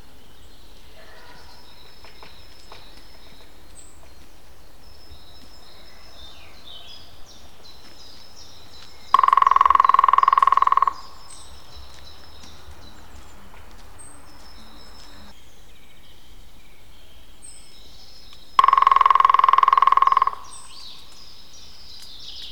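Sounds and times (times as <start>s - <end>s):
European green woodpecker drumming: 1.7s - 15.4s, 18.6s - 21.5s.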